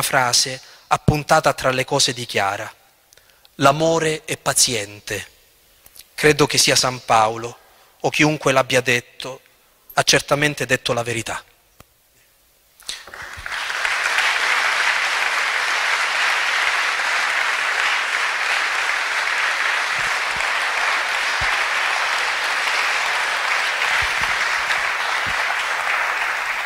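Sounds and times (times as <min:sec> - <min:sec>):
speech: 0:00.0 - 0:02.8, 0:03.6 - 0:05.3, 0:06.2 - 0:09.4, 0:10.0 - 0:11.5
audience applause: 0:13.0 - 0:26.6.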